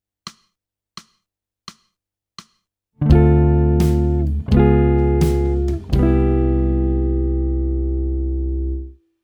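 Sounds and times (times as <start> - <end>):
jazz music: 3.1 - 8.4.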